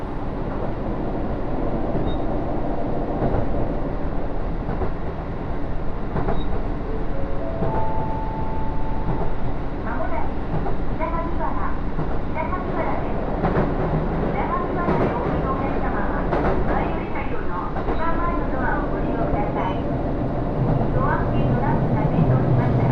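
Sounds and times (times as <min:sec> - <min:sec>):
Takayama Main Line local train rumbling: 0:00.0 - 0:22.9
scattered voices: 0:09.8 - 0:13.3, 0:14.2 - 0:20.0, 0:20.7 - 0:22.9.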